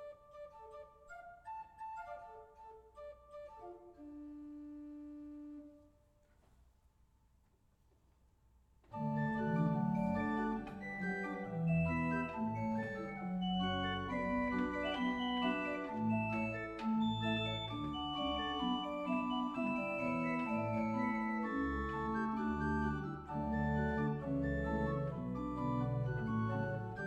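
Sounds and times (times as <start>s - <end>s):
Weigle pipe organ: 8.9s - 27.0s.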